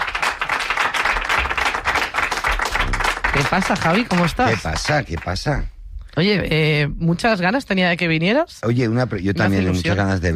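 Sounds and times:
audience applause: 0.0s - 5.6s
speech: 3.3s - 10.3s.

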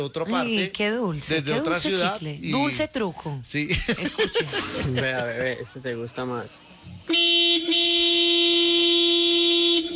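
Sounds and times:
speech: 0.0s - 7.2s
laughter: 3.7s - 5.7s
loud sustained horn honk: 7.1s - 9.9s.

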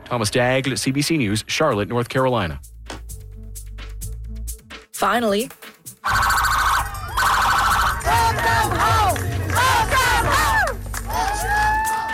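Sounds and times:
speech: 0.1s - 2.7s, 5.0s - 6.4s
loud wailing sirens: 6.0s - 10.5s
big crowd cheering at a homecoming celebration in Stratford, PEI: 6.0s - 12.1s
blaring horn tones: 6.1s - 10.8s.

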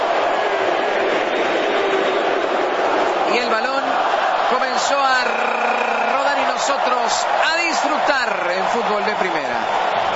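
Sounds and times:
stadium crowd in Vancouver roaring before kickoff of a World Cup football match: 0.0s - 10.1s
speech: 4.8s - 6.0s, 6.6s - 10.1s.

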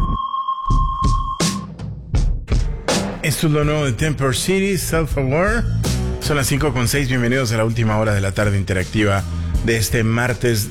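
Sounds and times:
sonar-style ping: 0.0s - 1.7s
punchy bass thumps: 2.1s - 7.3s
speech: 3.2s - 10.7s.

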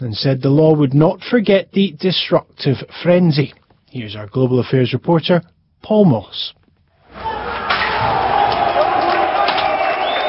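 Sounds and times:
speech: 0.0s - 7.3s
crowd cheering during riot: 7.1s - 10.2s.

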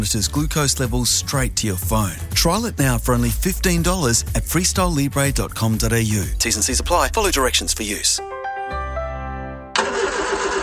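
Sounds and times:
speech: 0.0s - 8.8s
ute engine struggling to start: 9.8s - 10.6s.

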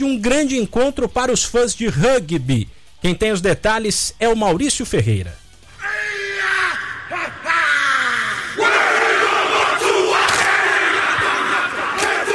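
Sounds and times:
speech: 0.0s - 5.4s
crowd roar: 5.8s - 12.3s
group of men shouting a Maori haka war chant: 8.5s - 12.3s.

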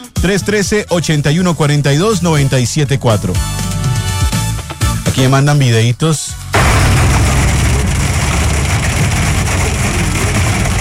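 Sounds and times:
speech: 0.2s - 3.7s, 5.1s - 6.4s
hail falling on a car: 6.6s - 10.7s.

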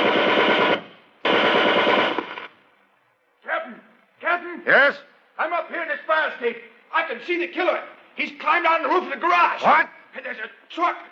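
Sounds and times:
machine gun fire: 0.0s - 2.6s
speech: 4.7s - 11.1s.

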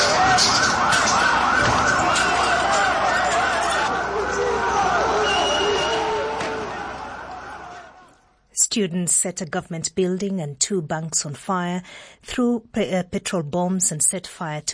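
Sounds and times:
several police sirens wailing at a street protest: 0.0s - 8.2s
rumbling crowd of voices at a protest: 0.0s - 8.3s
speech: 8.8s - 14.7s.

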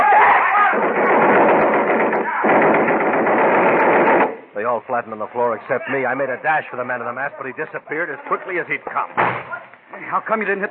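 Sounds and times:
submachine gun firing: 0.6s - 4.5s
speech: 4.8s - 10.6s.

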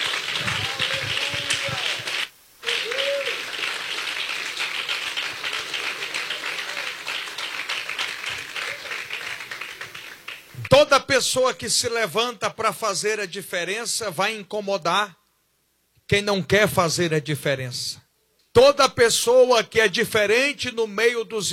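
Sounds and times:
audience applauding: 0.0s - 10.7s
speech: 11.0s - 15.2s, 16.1s - 18.0s, 18.6s - 21.5s.

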